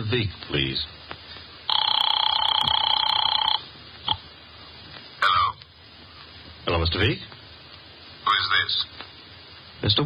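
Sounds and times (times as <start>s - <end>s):
speech: 0.1s - 1.1s, 6.7s - 7.4s, 8.7s - 8.9s, 9.8s - 10.0s
telephone bell ringing: 1.7s - 3.6s.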